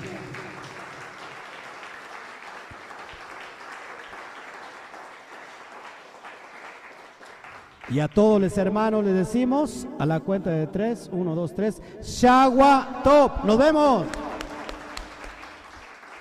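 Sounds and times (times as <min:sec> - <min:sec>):
audience applauding: 0:00.0 - 0:08.0, 0:14.1 - 0:16.1
speech: 0:07.9 - 0:14.2.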